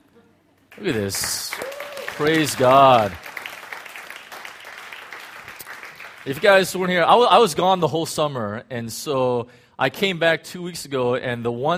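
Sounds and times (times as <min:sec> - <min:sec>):
group applause at a church Bible study: 0:00.6 - 0:06.7
speech: 0:00.8 - 0:03.2, 0:06.2 - 0:11.7.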